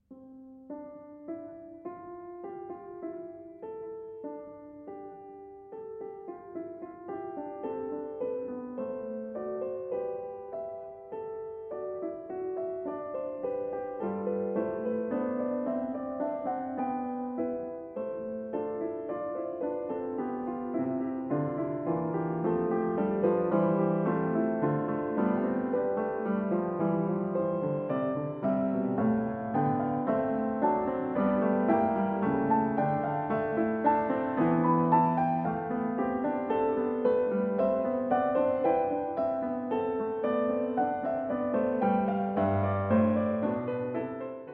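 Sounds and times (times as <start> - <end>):
keyboard fugue in C major: 0.0 - 44.5.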